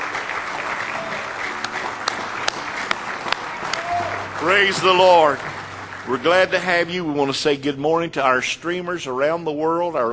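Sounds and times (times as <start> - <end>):
audience hand clapping: 0.0 - 7.3
speech: 4.4 - 10.1.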